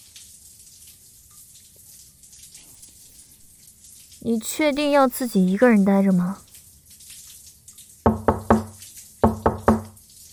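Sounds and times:
speech: 0:04.2 - 0:06.5
knocking on a door: 0:08.1 - 0:09.9.

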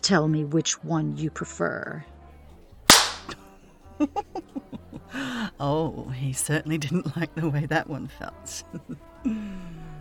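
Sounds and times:
speech: 0:00.0 - 0:02.1, 0:04.0 - 0:09.7
single-tail whip striking: 0:02.9 - 0:03.4.

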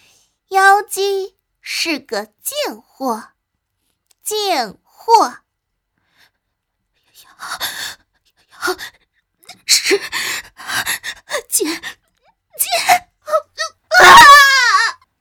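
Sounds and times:
speech: 0:00.8 - 0:03.4, 0:04.3 - 0:05.4, 0:09.7 - 0:12.0, 0:12.6 - 0:14.8
woman gasping and whimpering in pain: 0:07.4 - 0:14.3
woman screaming in pain: 0:12.7 - 0:15.0.

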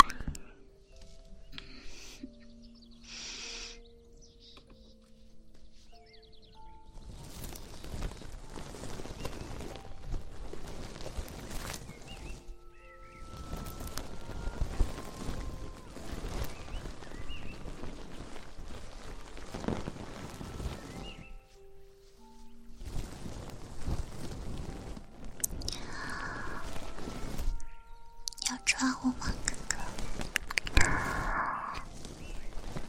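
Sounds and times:
feather wand brushing: 0:07.2 - 0:28.1, 0:28.8 - 0:32.8.

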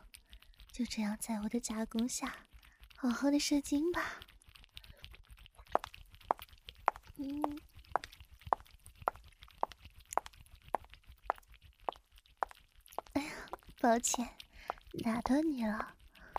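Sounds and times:
speech: 0:00.8 - 0:04.3, 0:07.2 - 0:07.7, 0:13.8 - 0:14.4, 0:15.0 - 0:16.0
footsteps of someone approaching: 0:05.6 - 0:16.3.

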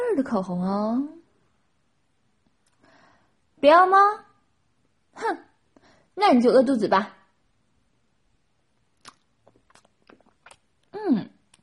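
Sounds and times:
speech: 0:00.2 - 0:01.2, 0:03.6 - 0:04.3, 0:05.2 - 0:05.5, 0:06.2 - 0:07.2, 0:11.0 - 0:11.3
person chewing beef: 0:09.0 - 0:11.6.

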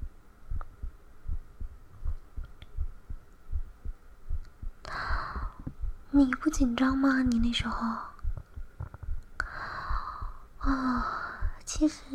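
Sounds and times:
fast heartbeat thumping: 0:00.5 - 0:06.1, 0:08.2 - 0:09.2, 0:09.8 - 0:11.7
speech: 0:06.2 - 0:08.1, 0:11.8 - 0:12.1.

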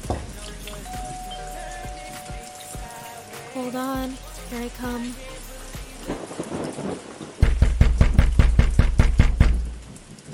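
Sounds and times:
steady rain: 0:00.0 - 0:10.3
speech: 0:03.6 - 0:05.3
heavy knocking on a door: 0:07.4 - 0:09.7.

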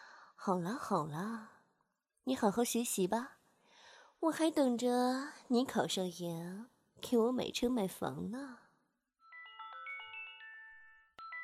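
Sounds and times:
speech: 0:00.4 - 0:01.6, 0:02.3 - 0:03.4, 0:04.2 - 0:08.6
alarm clock ringing with an electronic melody: 0:09.2 - 0:11.4.

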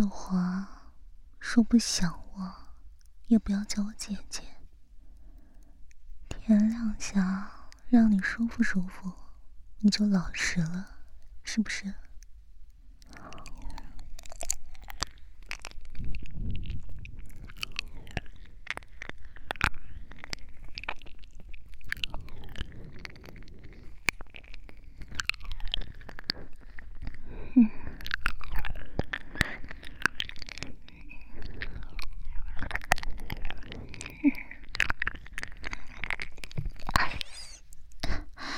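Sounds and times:
speech: 0:00.0 - 0:00.8, 0:01.4 - 0:02.6, 0:03.3 - 0:04.5, 0:06.5 - 0:09.2, 0:09.8 - 0:12.0
biting: 0:12.0 - 0:38.5.

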